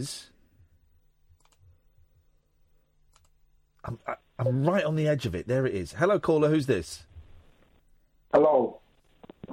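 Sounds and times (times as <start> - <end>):
speech: 0.0 - 0.3, 3.8 - 7.1, 8.3 - 8.8
computer mouse clicks selecting phone lines on a call-in system: 1.4 - 1.6, 3.1 - 3.4.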